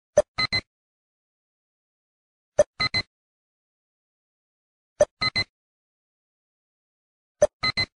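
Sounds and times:
chirp tone: 0.4s - 0.7s, 2.8s - 3.1s, 5.2s - 5.5s, 7.5s - 7.9s.

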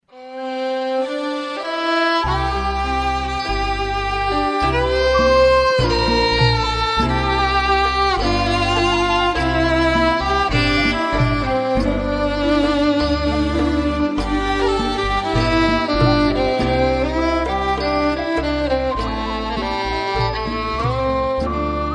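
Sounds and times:
Thai music: 0.0s - 21.9s.

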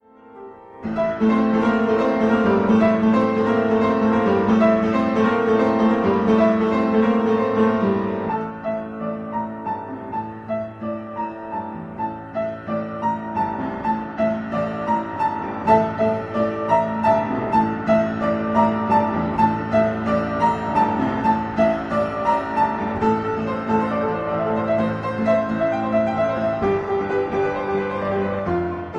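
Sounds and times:
piano: 0.0s - 28.9s.

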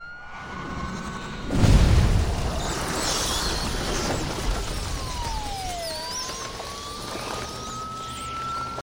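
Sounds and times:
bats: 2.3s - 8.8s.

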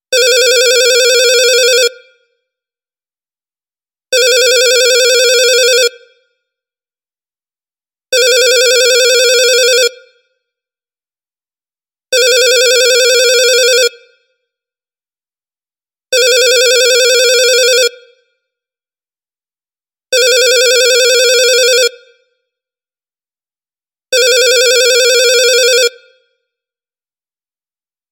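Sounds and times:
retro phone ring: 0.2s - 1.9s, 4.2s - 5.9s, 8.2s - 9.9s, 12.2s - 13.9s, 16.2s - 18.0s, 20.2s - 21.9s, 24.2s - 26.0s.

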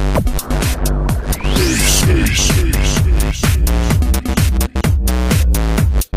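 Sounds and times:
electro house beat: 0.2s - 6.0s.

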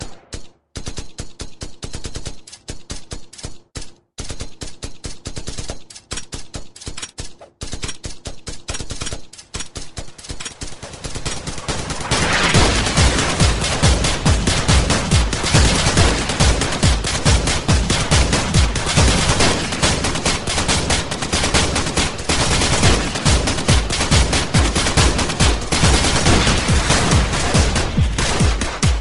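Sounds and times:
gunshot: 11.3s - 29.0s.

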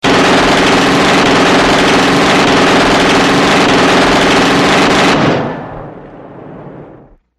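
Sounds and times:
9mm automatic pistol firing: 0.0s - 5.9s.

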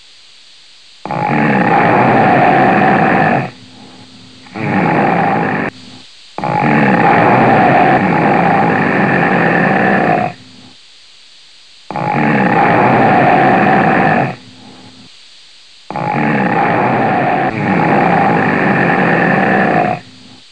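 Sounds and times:
person snoring: 1.0s - 5.8s, 6.4s - 10.7s, 11.9s - 15.1s, 15.9s - 20.4s.

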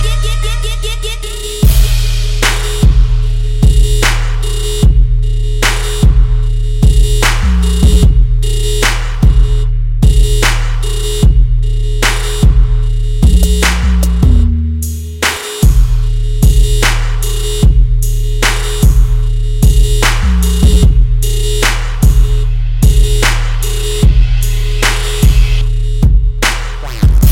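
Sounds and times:
trap beat: 0.0s - 27.3s.

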